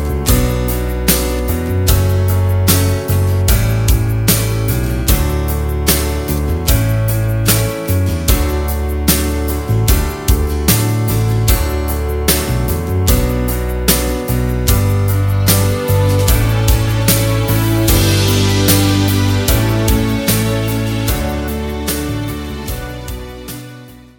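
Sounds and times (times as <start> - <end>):
song backing track in D without lead guitar: 0.0 - 24.1.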